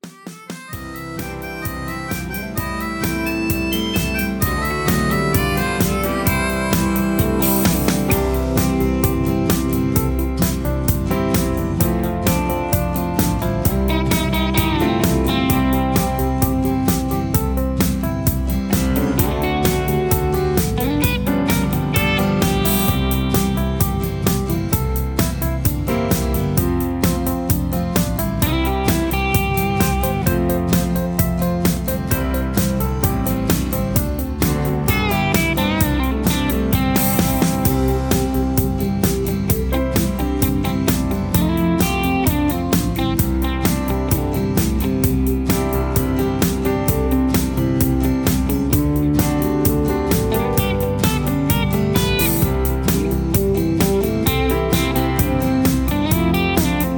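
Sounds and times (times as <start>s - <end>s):
instrumental music: 0.0s - 56.9s.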